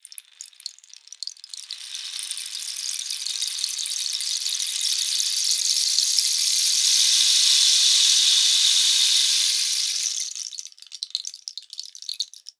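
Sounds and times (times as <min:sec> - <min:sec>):
percussion: 0:00.0 - 0:12.5
rain: 0:01.5 - 0:10.8.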